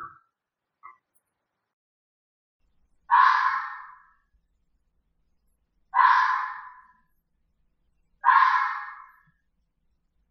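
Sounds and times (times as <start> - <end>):
fox calling: 3.1 - 4.2, 5.9 - 7.0, 8.2 - 9.3.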